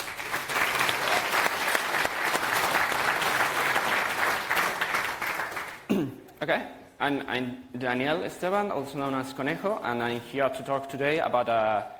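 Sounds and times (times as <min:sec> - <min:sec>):
audience applause: 0:00.0 - 0:05.9
speech: 0:06.5 - 0:11.9.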